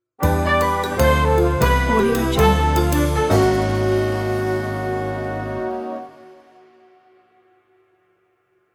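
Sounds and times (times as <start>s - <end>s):
jazzy sitcom stinger transition: 0.2s - 6.5s.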